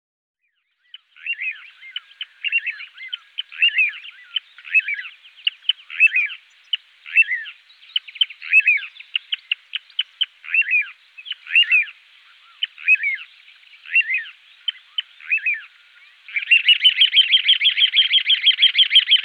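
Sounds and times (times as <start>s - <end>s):
little ringed plover calling: 0.9s - 19.2s.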